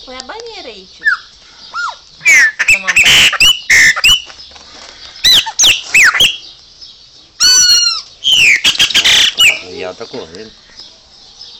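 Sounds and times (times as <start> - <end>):
speech: 0.0 - 1.8, 2.8 - 4.1, 9.9 - 10.6
Chopi Blackbird singing sharp whistles: 1.0 - 4.3, 5.2 - 6.5, 7.4 - 9.8.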